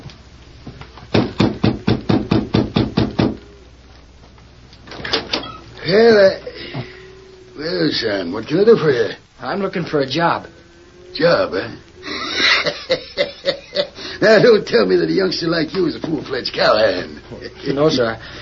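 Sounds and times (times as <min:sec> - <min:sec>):
knocking on a wooden door: 0:01.1 - 0:03.4
speech: 0:05.9 - 0:06.2, 0:07.9 - 0:10.5, 0:11.1 - 0:11.9, 0:14.2 - 0:18.4
laughter: 0:12.0 - 0:14.7, 0:16.9 - 0:18.2.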